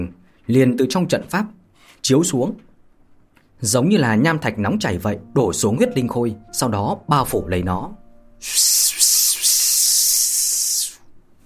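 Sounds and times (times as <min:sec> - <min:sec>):
speech: 0:00.0 - 0:02.7, 0:03.6 - 0:09.2
sizzling hiss: 0:08.4 - 0:11.0.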